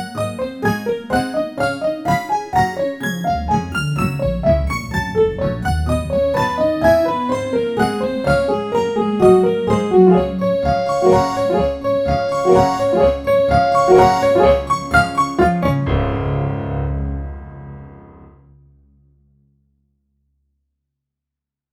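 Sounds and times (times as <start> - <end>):
waltz music: 0.0 - 17.2.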